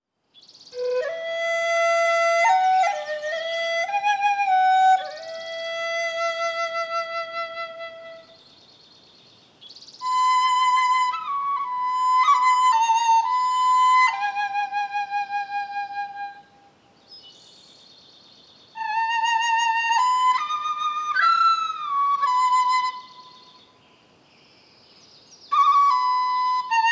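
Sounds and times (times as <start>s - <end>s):
relaxing Eastern music: 0.7s - 8.4s, 10.0s - 16.7s, 18.7s - 23.8s, 25.5s - 26.9s.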